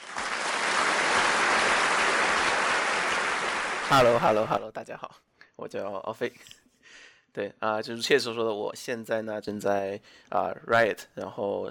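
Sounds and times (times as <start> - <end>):
audience applause: 0.0 - 4.5
speech: 3.9 - 11.6.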